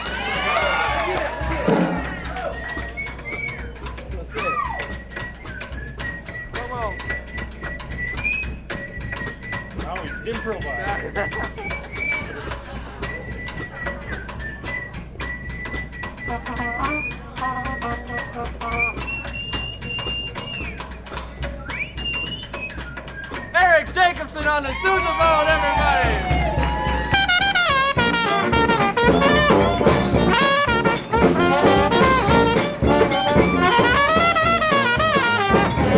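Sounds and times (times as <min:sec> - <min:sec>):
band members laughing, chattering and calling out: 0:00.0 - 0:35.9
whistled melody of high sliding notes: 0:00.4 - 0:35.9
speech: 0:01.7 - 0:02.0.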